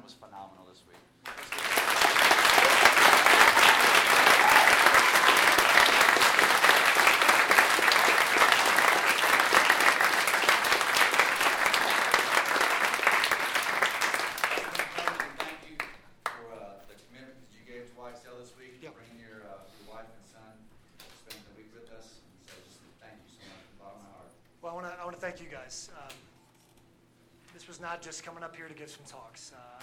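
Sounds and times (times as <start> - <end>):
audience applause after a sermon: 1.2 - 16.4
speech: 27.9 - 29.8.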